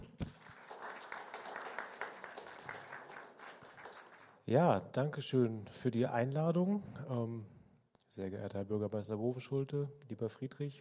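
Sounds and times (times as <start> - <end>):
audience applause: 0.3 - 4.4
speech: 4.5 - 7.6, 8.2 - 10.7.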